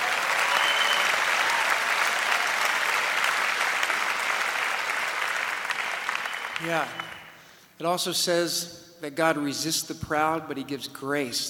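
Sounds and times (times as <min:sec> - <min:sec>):
audience applause: 0:00.0 - 0:07.3
speech: 0:06.6 - 0:07.1, 0:07.8 - 0:11.4.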